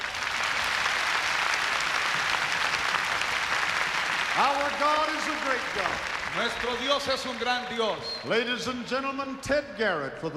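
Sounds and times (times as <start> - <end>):
audience applause: 0.0 - 8.3
speech: 4.4 - 10.3.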